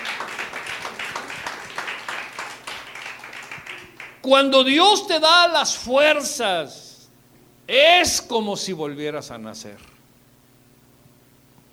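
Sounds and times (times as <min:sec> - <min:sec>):
audience applause: 0:00.0 - 0:04.2
speech: 0:04.2 - 0:06.8, 0:07.7 - 0:09.9.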